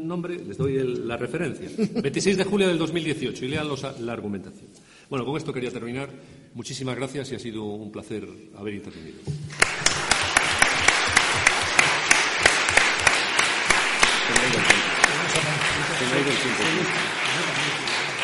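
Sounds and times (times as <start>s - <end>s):
speech: 0.0s - 10.0s, 14.3s - 14.9s, 16.0s - 17.8s
audience applause: 9.5s - 18.2s.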